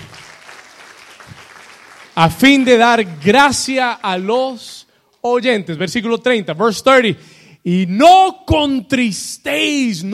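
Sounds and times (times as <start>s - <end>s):
crowd applause: 0.0s - 4.6s
speech: 2.2s - 10.1s.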